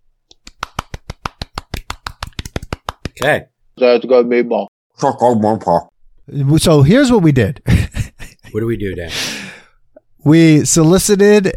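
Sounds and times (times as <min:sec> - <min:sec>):
golf clap of soft crisp hand claps: 0:00.3 - 0:03.4
speech: 0:03.2 - 0:07.8, 0:08.5 - 0:09.3, 0:10.2 - 0:11.5.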